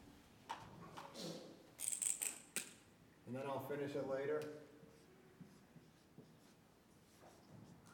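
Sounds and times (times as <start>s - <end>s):
speech: 3.3s - 4.7s
title being written on a board: 4.9s - 7.9s.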